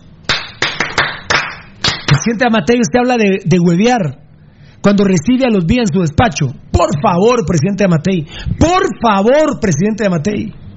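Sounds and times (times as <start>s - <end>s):
hands clapping: 0.3s - 2.4s
speech: 2.2s - 4.2s, 4.8s - 10.6s.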